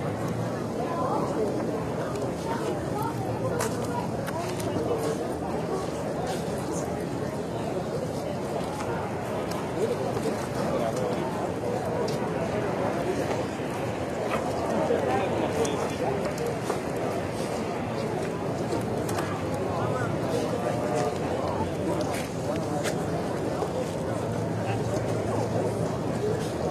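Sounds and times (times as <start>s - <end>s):
distant crowds: 0.0s - 26.6s.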